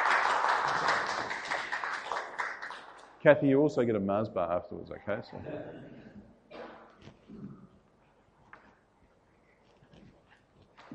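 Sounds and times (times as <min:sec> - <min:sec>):
audience applause: 0:00.0 - 0:03.0
speech: 0:03.2 - 0:06.0.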